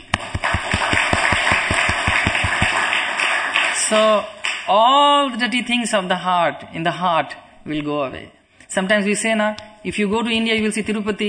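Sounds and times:
audience clapping hands: 0.0 - 4.7
speech: 3.9 - 11.2.

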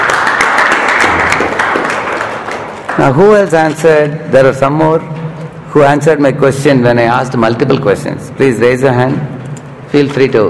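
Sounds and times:
audience applause for a 12th-standard student at a question-and-answer session: 0.0 - 3.1
speech: 3.0 - 10.4.

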